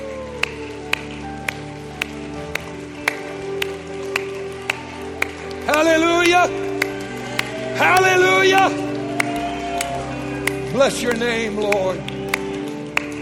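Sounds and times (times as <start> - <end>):
audience clapping in a steady beat: 0.0 - 13.2
speech: 5.9 - 6.7, 7.8 - 8.8, 10.8 - 12.2.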